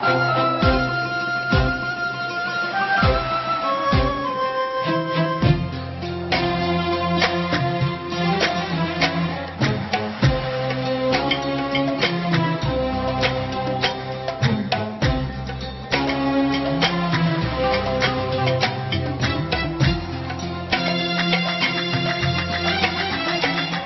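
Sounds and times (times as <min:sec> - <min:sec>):
classical music: 0:00.0 - 0:23.8.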